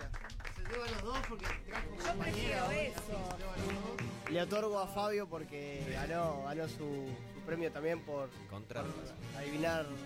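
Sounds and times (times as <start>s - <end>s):
applause for the winner: 0.0s - 4.7s
speech: 0.7s - 10.0s.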